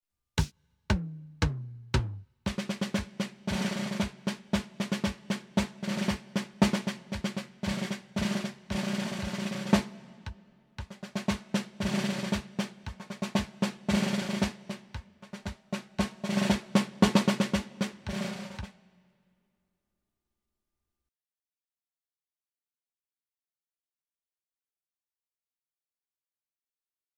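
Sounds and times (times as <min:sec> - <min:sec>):
drum roll: 0:00.4 - 0:18.8.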